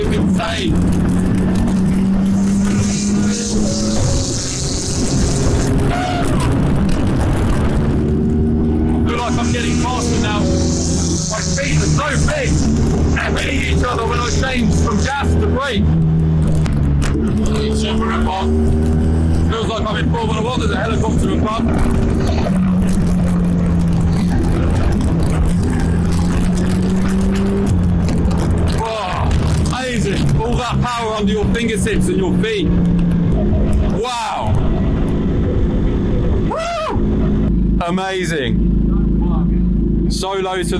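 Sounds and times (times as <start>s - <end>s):
low sports car engine roaring and revving: 0.0s - 40.7s
speech: 0.4s - 1.1s, 19.8s - 22.2s, 31.2s - 33.0s, 37.9s - 38.7s, 40.1s - 40.7s.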